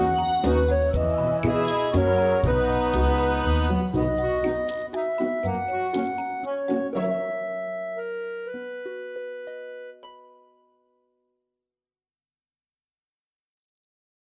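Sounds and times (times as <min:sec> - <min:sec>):
melody: 0:00.0 - 0:10.9.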